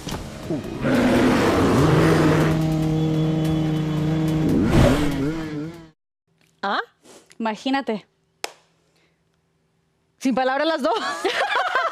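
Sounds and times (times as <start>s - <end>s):
motorcycle engine roaring and revving: 0.4s - 6.0s
speech: 0.5s - 1.1s, 7.4s - 8.1s, 10.2s - 11.7s.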